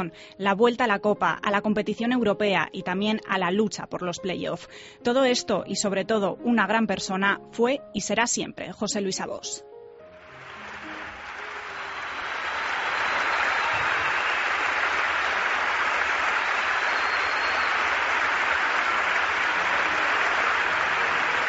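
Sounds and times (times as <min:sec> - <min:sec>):
speech: 0:00.0 - 0:09.7
crowd ovation in arena: 0:10.2 - 0:21.4.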